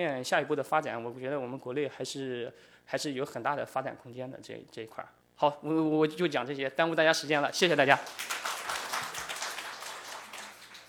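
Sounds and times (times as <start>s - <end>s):
speech: 0.0s - 8.4s
audience applause: 8.0s - 10.8s.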